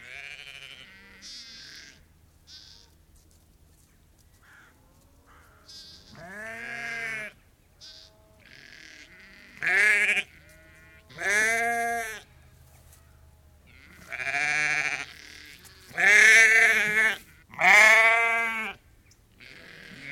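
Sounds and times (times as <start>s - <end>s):
lamb giving loud quavering bleats: 0.0s - 3.0s, 5.3s - 12.3s, 13.7s - 18.8s, 19.4s - 20.1s.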